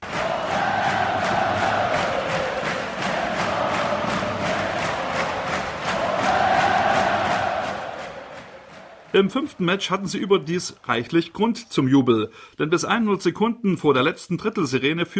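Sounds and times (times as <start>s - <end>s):
ice hockey fans chanting club name: 0.0s - 9.9s
rhythmic clapping: 0.0s - 10.8s
speech: 9.2s - 15.1s.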